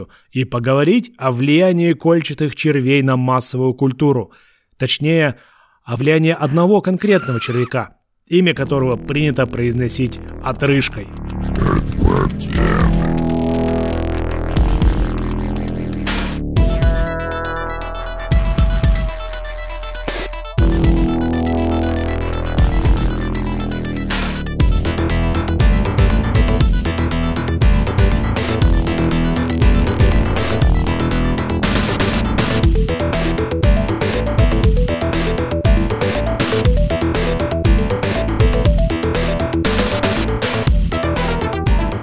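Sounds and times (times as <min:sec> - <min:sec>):
speech: 0:00.0 - 0:12.8
video game intro theme music: 0:08.6 - 0:42.0.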